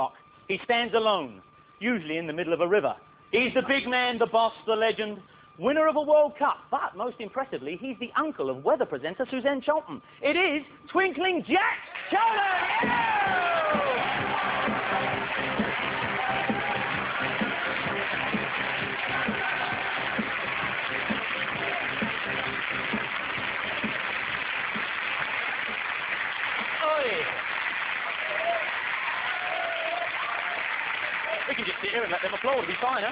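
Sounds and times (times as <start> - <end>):
speech: 0.0 - 13.6, 32.4 - 33.1
audience cheering and applauding: 11.9 - 33.1.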